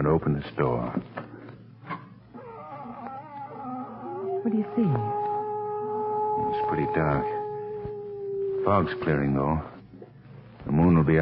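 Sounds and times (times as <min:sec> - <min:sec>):
speech: 0:00.1 - 0:01.2, 0:04.4 - 0:05.2, 0:06.4 - 0:07.4, 0:08.6 - 0:09.7, 0:10.6 - 0:11.2
cat howling: 0:02.4 - 0:09.8.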